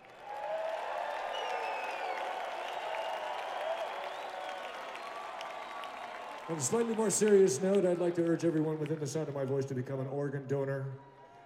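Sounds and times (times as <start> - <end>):
whoops and cheers: 0.0 - 8.4
audience applause: 0.0 - 9.4
speech: 6.5 - 11.1.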